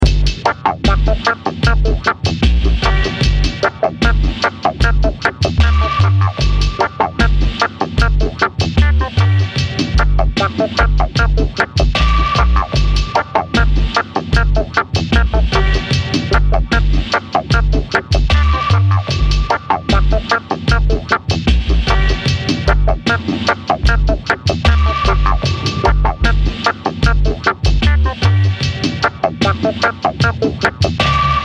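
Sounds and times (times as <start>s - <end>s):
minor-key dub music: 0.0s - 31.4s.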